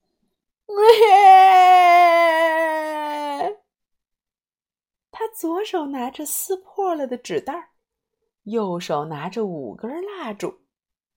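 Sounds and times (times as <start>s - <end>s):
loud crying: 0.7s - 3.6s
speech: 5.4s - 7.7s, 8.5s - 10.6s.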